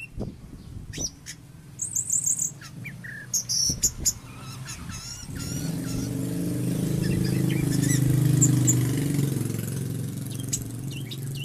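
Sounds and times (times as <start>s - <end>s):
Oriental magpie-robin singing: 0.0s - 11.4s.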